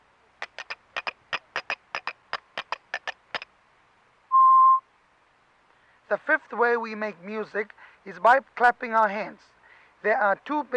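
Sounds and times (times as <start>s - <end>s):
two sticks struck together, clicking: 0.4s - 3.4s
speech: 6.1s - 10.7s.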